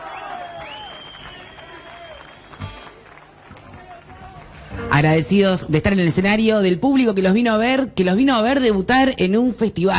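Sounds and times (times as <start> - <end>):
audience applause at a rock festival: 0.0 - 4.8
speech: 4.9 - 9.9.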